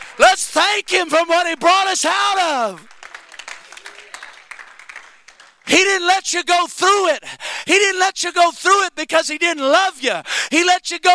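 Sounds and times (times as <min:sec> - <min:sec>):
audience clapping: 0:00.0 - 0:06.0
speech: 0:00.4 - 0:03.0, 0:05.7 - 0:11.1.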